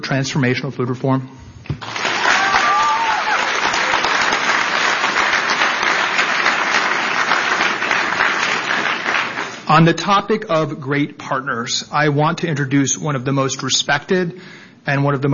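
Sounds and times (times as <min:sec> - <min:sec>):
speech: 0:00.0 - 0:01.9, 0:09.7 - 0:15.3
audience applause: 0:01.8 - 0:09.7.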